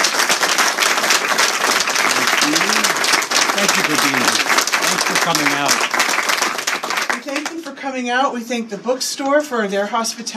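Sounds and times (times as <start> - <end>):
audience applause: 0.0 - 7.6
speech: 3.8 - 4.5, 5.1 - 6.1, 7.3 - 10.3.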